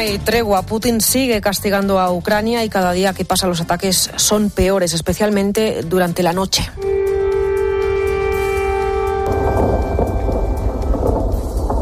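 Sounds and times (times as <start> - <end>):
speech: 0.0 - 7.0
air raid sirens at night in Kiev: 6.8 - 11.8.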